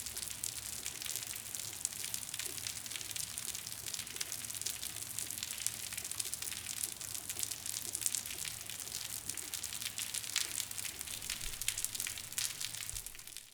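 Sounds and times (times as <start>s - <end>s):
rain on concrete in a city alley: 0.0s - 13.5s
water dripping in a city alley: 8.2s - 13.5s.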